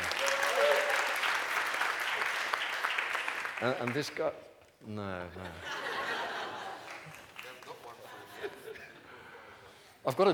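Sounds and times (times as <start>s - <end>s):
audience clapping: 0.0s - 4.4s, 6.6s - 8.6s
speech: 3.6s - 5.8s, 10.0s - 10.3s
laughter: 5.4s - 9.6s.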